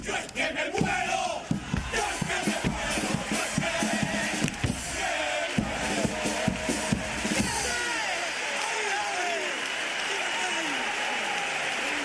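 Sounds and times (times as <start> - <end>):
audience cheering and shouting: 0.1 - 12.0
audience clapping after a pasodoble lyric: 1.8 - 12.0.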